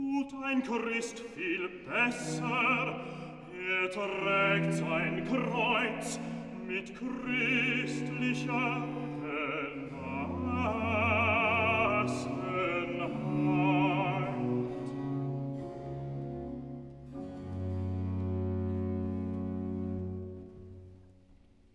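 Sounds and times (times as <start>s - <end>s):
recitative singing in a cantata: 0.0s - 16.4s
choir singing in a cantata: 0.6s - 20.4s.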